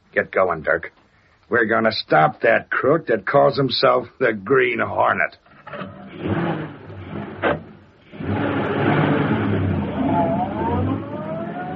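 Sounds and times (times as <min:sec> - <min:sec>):
speech: 0:00.2 - 0:06.0
car pulling away into the street: 0:05.7 - 0:11.7.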